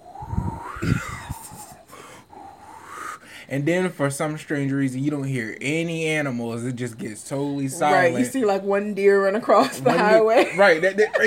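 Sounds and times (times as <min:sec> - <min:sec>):
voice imitating wind blowing through trees: 0:00.0 - 0:03.2
speech: 0:03.5 - 0:11.2.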